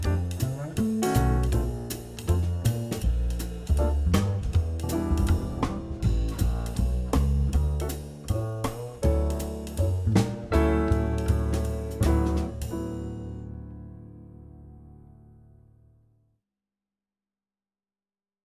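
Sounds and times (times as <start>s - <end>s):
jazz etude: 0.0s - 13.9s.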